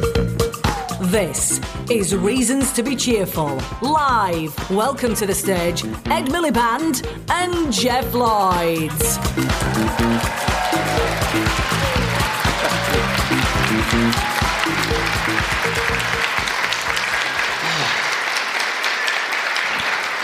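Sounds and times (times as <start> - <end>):
speech: 1.1 - 11.7
live audience clapping and whooping to welcome hosts: 9.4 - 20.2.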